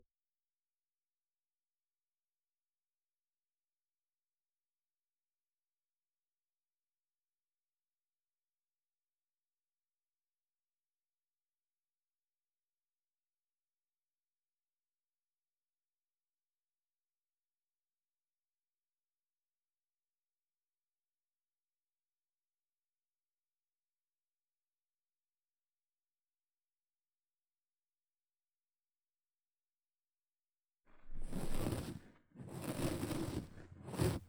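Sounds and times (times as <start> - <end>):
right ear hair shaving ASMR: 31.1 - 34.2.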